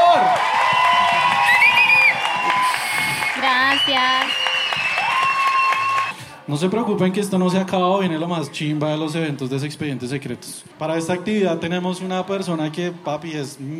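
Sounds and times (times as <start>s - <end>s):
crowd clapping: 0.0s - 6.2s
speech: 6.5s - 13.7s.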